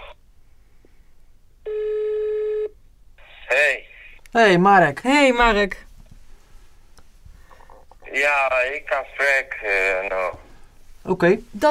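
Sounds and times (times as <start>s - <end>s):
phone call ringing tone: 1.6s - 2.8s
speech: 4.3s - 5.9s, 8.2s - 10.4s, 11.1s - 11.6s.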